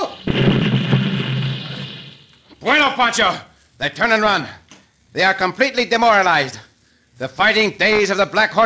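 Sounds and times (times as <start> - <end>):
cannon firing a shot: 0.1 - 2.5
speech: 3.0 - 8.6.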